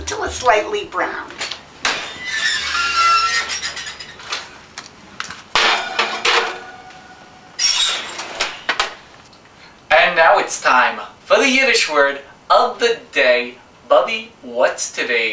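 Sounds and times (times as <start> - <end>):
speech: 0.2 - 1.4, 10.5 - 15.3
apple kugel baking dish clattering as placed into the oven: 1.8 - 4.5, 5.5 - 6.8, 7.6 - 9.2.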